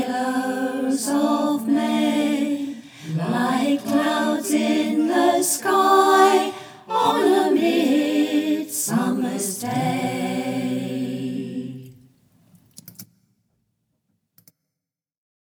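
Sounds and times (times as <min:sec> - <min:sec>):
people singing along in all parts: 0:00.0 - 0:12.1.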